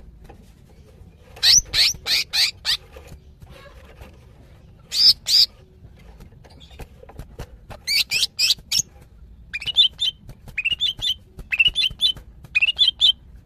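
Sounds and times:
female greater green leafbird calling: 1.3 - 2.9, 4.8 - 5.6, 7.8 - 8.9, 9.5 - 13.2.

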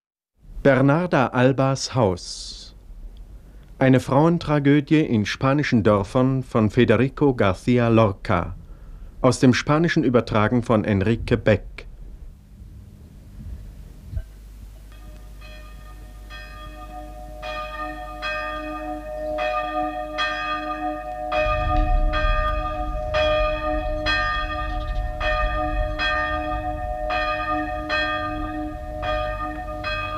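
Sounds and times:
speech: 0.6 - 2.6, 3.8 - 8.6, 9.2 - 11.7
church bells ringing for a funeral: 14.9 - 30.1.

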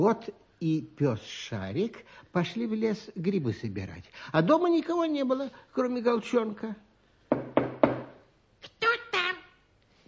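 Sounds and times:
speech: 0.0 - 6.9
knocking on a door: 7.3 - 8.2.

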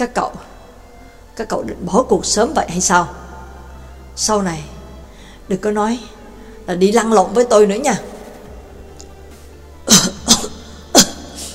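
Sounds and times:
speech: 0.0 - 0.5, 1.4 - 3.2, 4.2 - 4.8, 5.5 - 8.1
young man weakly coughing or laughing: 9.9 - 11.5.

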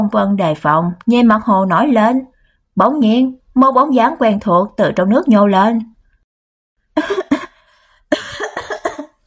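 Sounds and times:
speech: 0.1 - 5.9, 7.0 - 7.2
person coughing after choking on lake water: 7.0 - 9.2.

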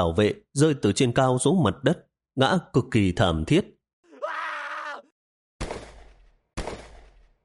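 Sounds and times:
speech: 0.0 - 3.8
man screaming in pain in the hold of a cargo ship: 4.1 - 5.1.

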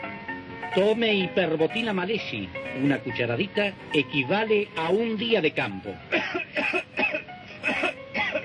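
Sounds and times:
speech: 0.7 - 6.9
person coughing in rough voiced bursts: 6.1 - 8.4.

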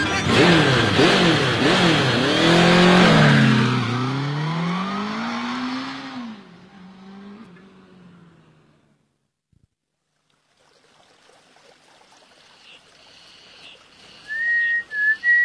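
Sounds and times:
motorcycle engine revving: 0.0 - 9.1.

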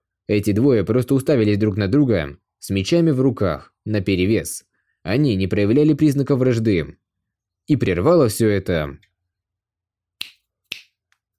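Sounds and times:
speech: 0.3 - 7.0, 7.7 - 9.1
finger snaps: 10.2 - 11.2.

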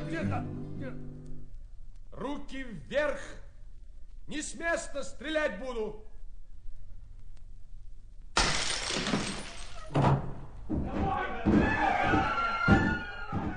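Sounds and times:
speech: 0.1 - 1.1, 2.2 - 3.4, 4.3 - 6.1
door being broken down: 8.4 - 13.5
people shouting: 10.9 - 13.5.

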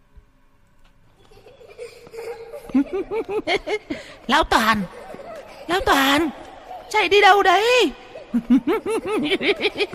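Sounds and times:
eerie high-pitched children's laughter chasing a running old man: 1.2 - 9.9
speech: 2.7 - 5.0, 5.7 - 9.9.

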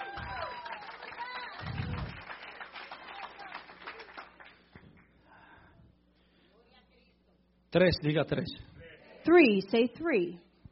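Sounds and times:
audience clapping: 0.0 - 5.2
speech: 7.7 - 10.5.

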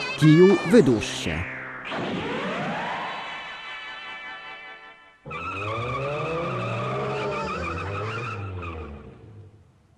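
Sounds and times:
speech: 0.2 - 2.1
car tires screeching as it skids to a stop on a street: 5.3 - 9.4.

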